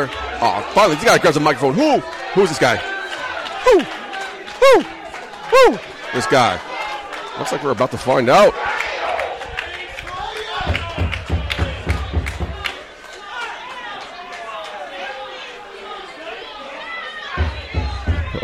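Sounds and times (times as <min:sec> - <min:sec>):
speech: 0:00.0 - 0:02.9, 0:03.6 - 0:04.0, 0:04.6 - 0:06.7, 0:07.4 - 0:08.7
noisy arena crowd roaring: 0:00.0 - 0:18.4
sharp claps and thumps: 0:10.6 - 0:12.8.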